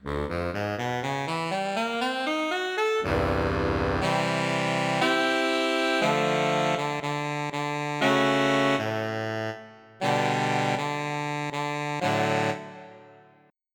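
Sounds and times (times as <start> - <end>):
alto saxophone played hard: 0.1 - 13.5.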